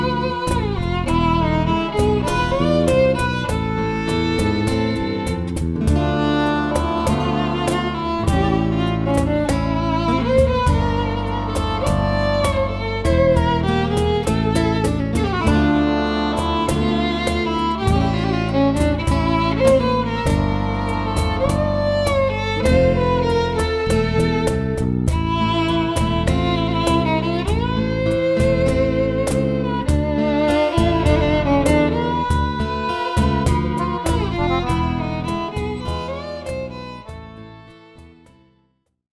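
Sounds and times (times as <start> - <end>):
violin: 0.0 - 38.6.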